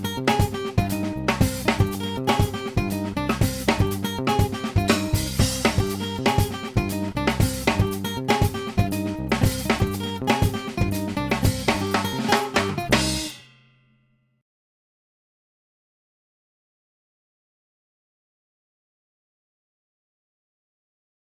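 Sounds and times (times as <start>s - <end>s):
Afro-Cuban music: 0.0s - 13.4s.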